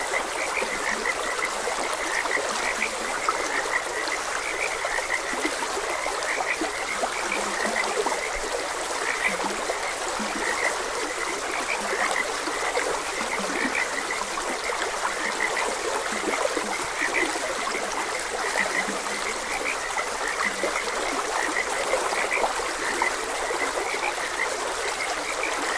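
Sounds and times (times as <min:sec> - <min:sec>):
frog chorus croaking: 0:00.0 - 0:25.7
stream water flowing: 0:00.0 - 0:25.7.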